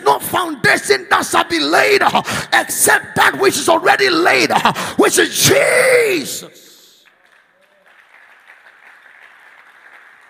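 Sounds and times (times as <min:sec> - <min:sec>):
speech: 0:00.1 - 0:06.7
crowd clapping: 0:07.0 - 0:10.2.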